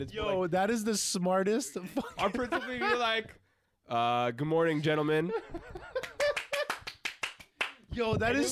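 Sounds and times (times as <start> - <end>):
speech: 0.0 - 6.0, 8.0 - 8.5
laughter: 1.8 - 3.4, 4.7 - 6.8
hands clapping: 6.0 - 8.1.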